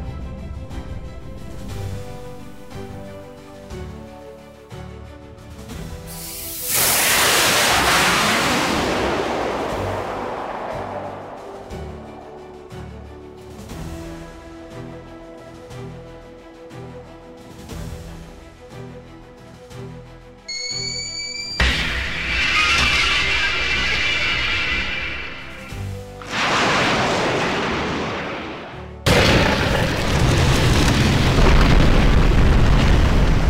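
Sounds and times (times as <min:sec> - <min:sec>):
missile launch: 0:06.6 - 0:13.1, 0:21.6 - 0:33.4.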